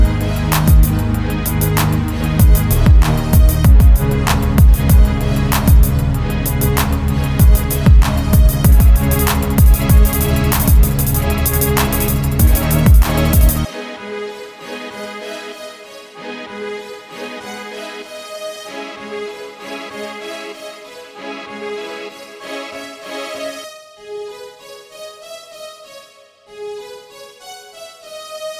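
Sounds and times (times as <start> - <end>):
dirty strings: 0.0 - 14.8.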